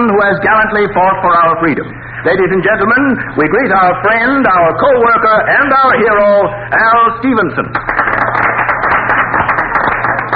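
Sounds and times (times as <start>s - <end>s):
speech: 0.0s - 8.4s
audience applause: 7.7s - 10.3s.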